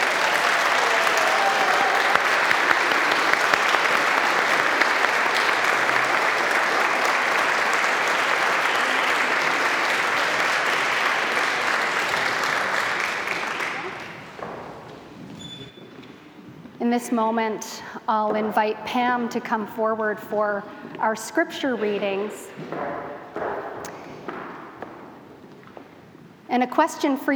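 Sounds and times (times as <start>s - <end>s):
audience applause: 0.0s - 14.9s
speech: 17.0s - 22.9s, 26.6s - 27.3s.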